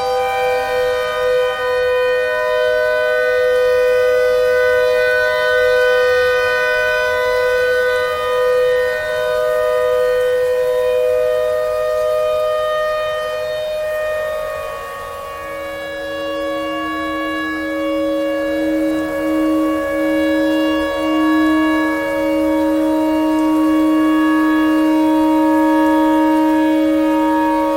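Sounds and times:
clarinet notes: 0:00.0 - 0:27.7
tornado siren: 0:00.0 - 0:27.7.

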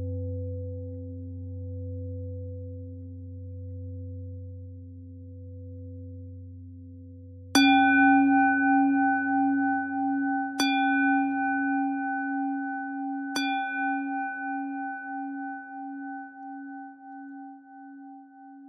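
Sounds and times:
bell: 0:07.6 - 0:18.6.

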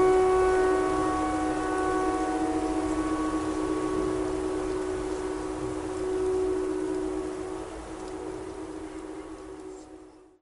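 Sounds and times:
clarinet playing pentatonic tornado siren tune: 0:00.0 - 0:07.5.

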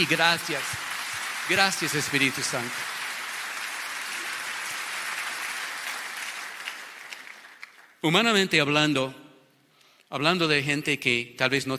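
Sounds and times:
speech: 0:00.0 - 0:00.8, 0:01.5 - 0:02.9, 0:08.0 - 0:09.2, 0:10.1 - 0:11.7
audience applause: 0:00.0 - 0:08.0.

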